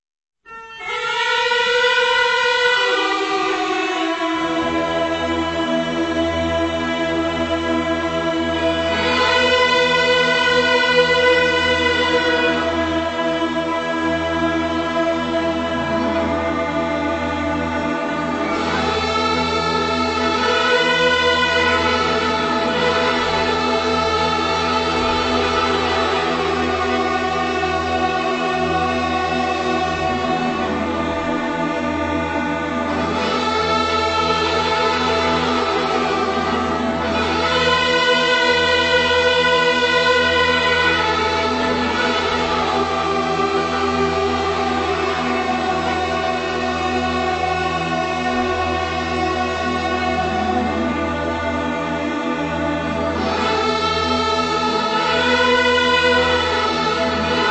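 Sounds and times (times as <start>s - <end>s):
gaida bagpipe orchestra: 0.5s - 57.4s.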